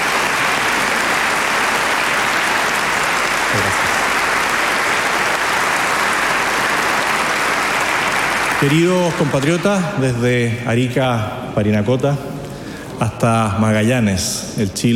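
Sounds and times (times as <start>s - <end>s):
audience applause: 0.0s - 10.1s
speech: 8.6s - 12.3s, 13.0s - 14.9s.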